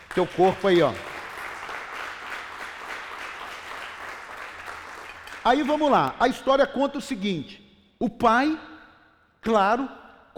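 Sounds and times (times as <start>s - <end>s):
audience applause: 0.0s - 5.4s
speech: 0.2s - 1.1s, 5.5s - 8.7s, 9.4s - 10.3s.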